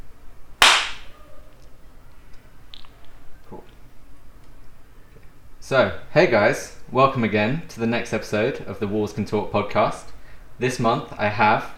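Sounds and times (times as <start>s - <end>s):
single hand clap: 0.6s - 1.1s
speech: 5.7s - 11.7s.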